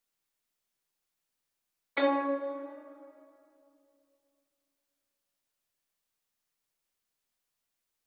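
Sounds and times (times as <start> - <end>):
guzheng playing in G sharp minor: 2.0 - 3.5.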